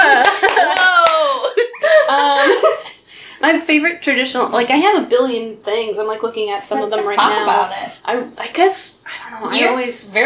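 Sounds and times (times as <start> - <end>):
hand claps into the microphone: 0.0 - 1.3
speech: 2.6 - 10.2.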